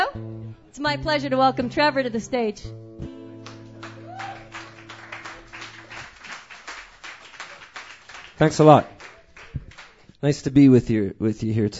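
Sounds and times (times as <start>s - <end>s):
speech: 0.2s - 2.8s, 8.4s - 9.0s, 10.2s - 11.7s
audience applause: 3.5s - 10.1s.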